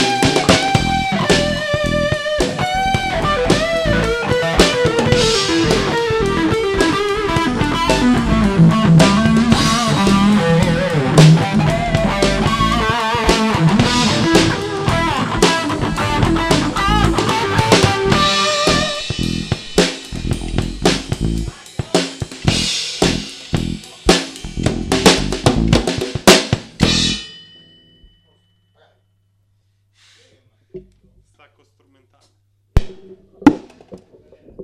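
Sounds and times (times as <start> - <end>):
musical improvisation: 0.0 - 27.3.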